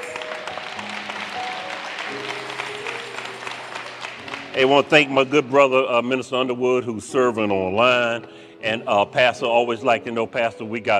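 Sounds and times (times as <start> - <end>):
audience hand clapping: 0.0 - 6.0
speech: 4.6 - 10.9.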